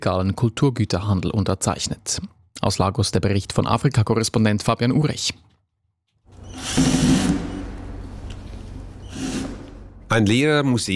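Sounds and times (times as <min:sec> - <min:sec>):
speech: 0:00.0 - 0:05.5, 0:06.6 - 0:07.4, 0:10.1 - 0:10.9
power tool whirring removing screws from a wooden crate: 0:06.3 - 0:09.9.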